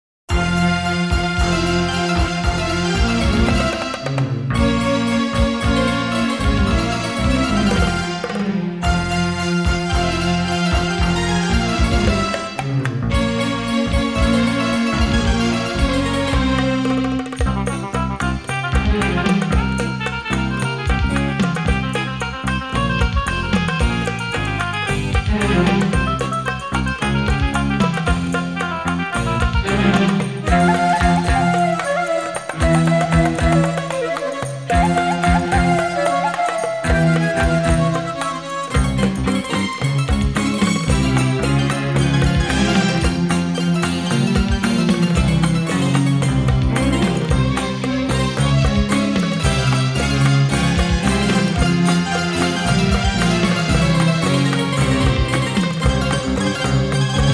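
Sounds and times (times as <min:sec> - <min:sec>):
instrumental music: 0:00.3 - 0:57.3.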